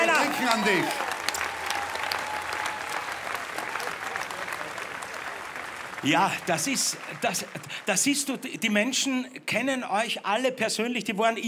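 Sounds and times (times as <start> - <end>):
audience applause: 0.0 - 8.7
speech: 0.5 - 1.1, 6.0 - 11.4.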